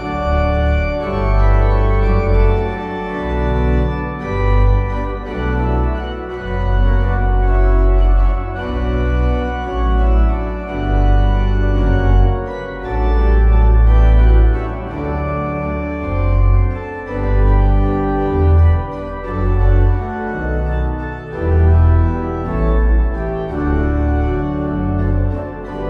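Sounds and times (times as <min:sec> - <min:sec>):
organ playing a hymn: 0:00.0 - 0:25.8.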